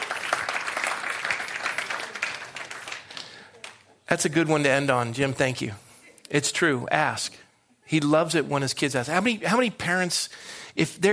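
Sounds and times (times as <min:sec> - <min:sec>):
audience applause: 0:00.0 - 0:03.8
speech: 0:04.1 - 0:11.1.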